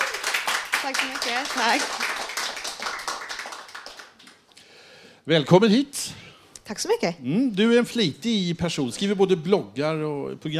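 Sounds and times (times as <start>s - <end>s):
audience applause: 0.0s - 4.5s
speech: 0.8s - 2.6s, 5.3s - 10.5s.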